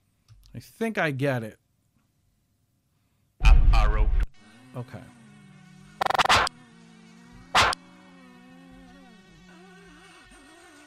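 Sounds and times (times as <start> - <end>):
speech: 0.6 - 1.6, 4.8 - 5.2
faint steady mosquito buzz: 4.4 - 10.8
sharp clicks: 6.0 - 6.6, 7.6 - 7.8.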